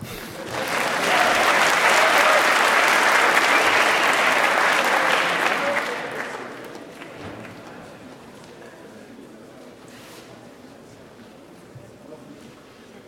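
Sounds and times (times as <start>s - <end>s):
audience applause: 0.0s - 8.4s.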